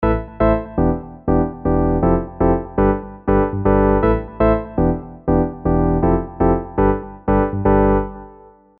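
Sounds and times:
EZkeys 2 electronic pop house arpeggio: 0.0s - 8.5s.

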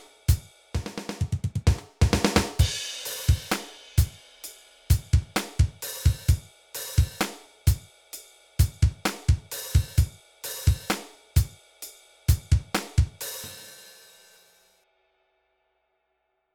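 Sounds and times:
funk music: 2.1s - 7.8s, 8.6s - 11.5s, 12.3s - 13.7s.

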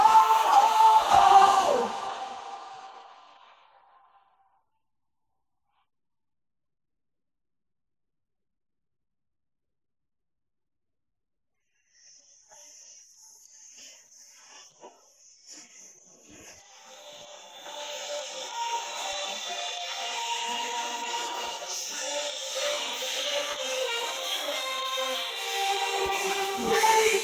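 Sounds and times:
person singing: 0.0s - 3.2s, 16.6s - 27.2s.

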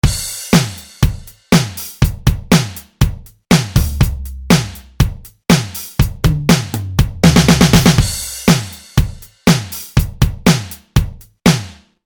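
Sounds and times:
HR16 drum machine loop: 0.0s - 11.6s.

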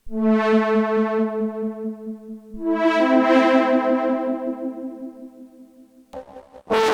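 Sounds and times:
octave fuzz synth: 0.1s - 6.8s
octave clang synth: 2.9s - 6.4s.

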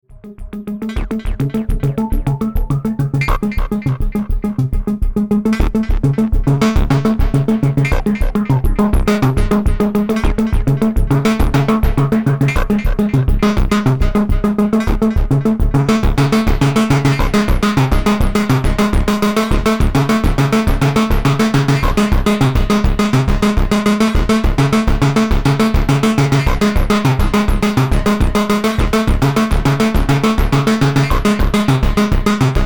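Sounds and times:
Motor Synth MkII at full drive: 0.1s - 32.6s.

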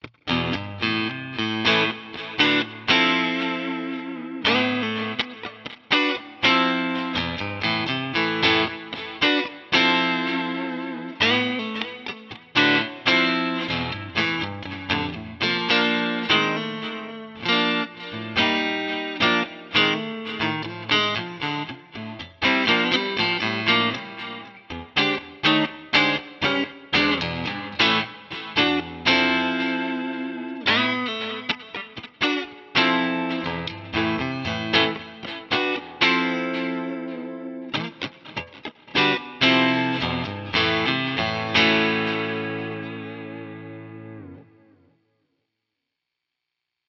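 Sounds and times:
direct input recording with Boss CS 3 compressor: 0.0s - 44.6s.

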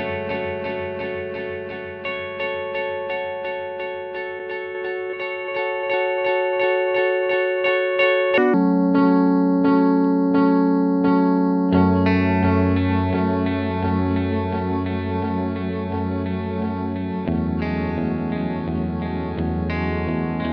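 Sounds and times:
delay effect with envelope: 0.0s - 20.5s.

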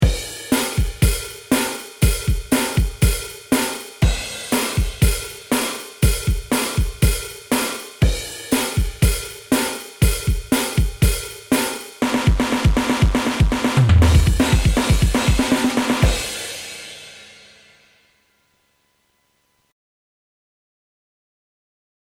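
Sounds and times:
Yamaha FGDP 30 drum set: 0.0s - 17.6s.

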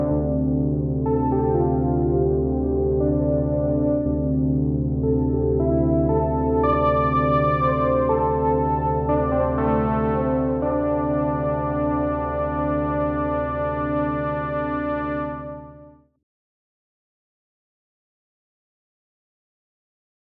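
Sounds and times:
Arturia SQ80 V synthesizer: 0.0s - 16.2s.

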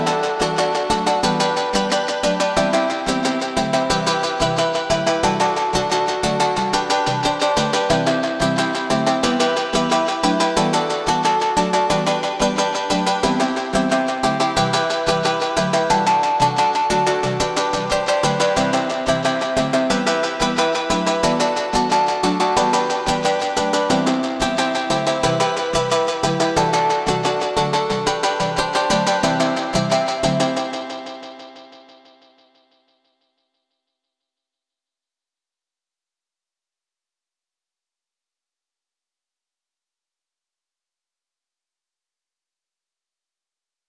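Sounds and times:
echoing rhythm: 0.0s - 32.2s.

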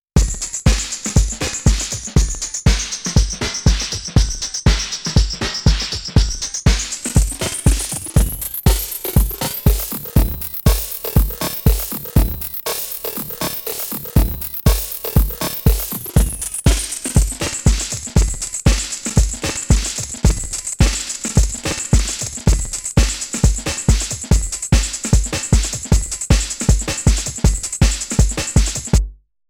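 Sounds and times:
Digitakt vintage time-stretching: 0.2s - 29.2s.

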